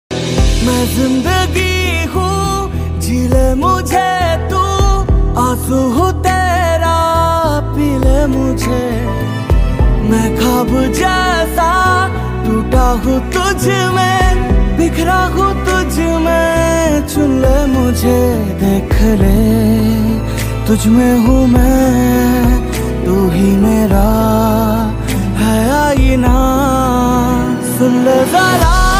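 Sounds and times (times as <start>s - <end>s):
Hindi love song: 0.1s - 28.9s.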